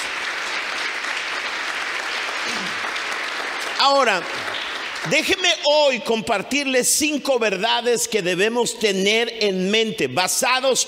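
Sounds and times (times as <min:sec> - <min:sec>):
audience applauding: 0:00.0 - 0:05.7
speech: 0:03.8 - 0:10.8.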